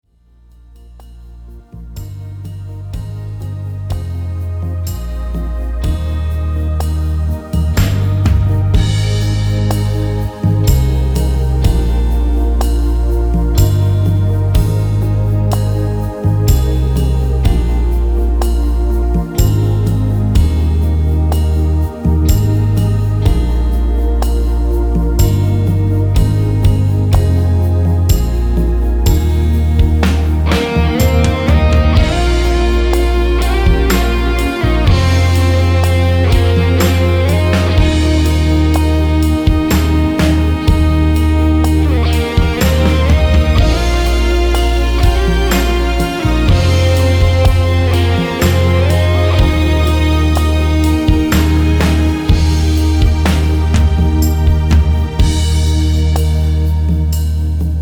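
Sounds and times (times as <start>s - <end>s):
rhythm: 0.3s - 57.7s.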